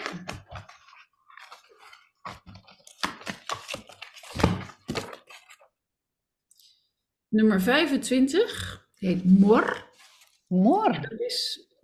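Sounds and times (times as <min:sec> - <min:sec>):
shuffling a deck of cards: 0:00.0 - 0:05.7
speech: 0:07.3 - 0:09.8, 0:10.5 - 0:11.8.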